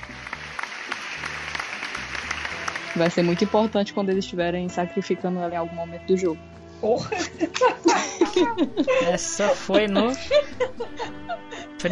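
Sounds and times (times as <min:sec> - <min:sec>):
applause sound effect: 0:00.0 - 0:03.8
speech: 0:03.0 - 0:11.9
laughter: 0:06.8 - 0:11.9.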